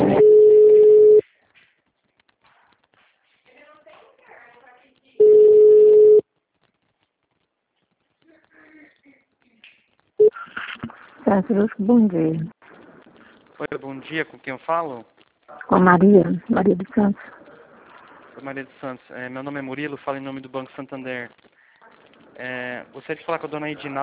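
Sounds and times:
steady single-pitch telephone tones: 0:00.2 - 0:01.2, 0:05.2 - 0:06.2
band-limited telephone line noise during a call transfer: 0:10.3 - 0:13.4, 0:15.5 - 0:18.5
speech: 0:11.5 - 0:12.5, 0:13.6 - 0:17.4, 0:18.4 - 0:21.5, 0:22.4 - 0:24.0
faint voice fragments: 0:15.5 - 0:18.6.

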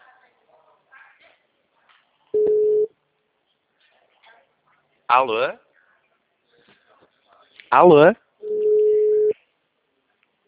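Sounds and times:
telephone line ringback tone: 0:02.4 - 0:02.9, 0:08.4 - 0:09.3
speech: 0:05.1 - 0:05.7, 0:07.7 - 0:08.2.

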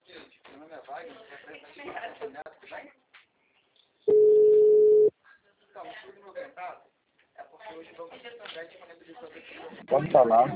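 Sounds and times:
telephone dial tone after a dropped call: 0:04.1 - 0:05.1
speech: 0:07.8 - 0:10.5.

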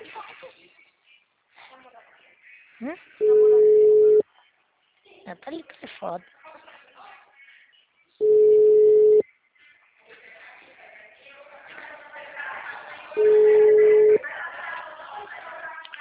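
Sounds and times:
sound: 0:00.0 - 0:15.9
speech: 0:02.8 - 0:03.4, 0:05.3 - 0:06.4
long steady low telephone line tones on a failing call: 0:03.2 - 0:04.2, 0:08.2 - 0:09.2, 0:13.2 - 0:14.2.

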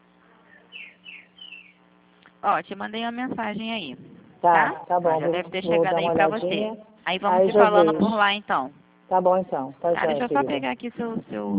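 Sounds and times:
household pet songbird chirping: 0:00.5 - 0:01.8
speech: 0:02.4 - 0:11.5.

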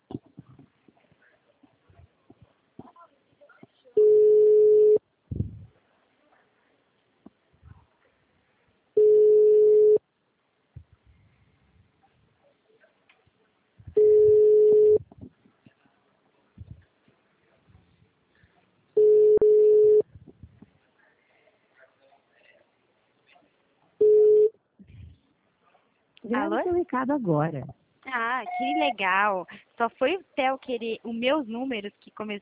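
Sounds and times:
ringback tone beeps while a phone call is placed: 0:04.0 - 0:05.0, 0:09.0 - 0:10.0, 0:14.0 - 0:15.0, 0:19.0 - 0:20.0
speech: 0:26.3 - 0:27.8, 0:28.4 - 0:32.4.

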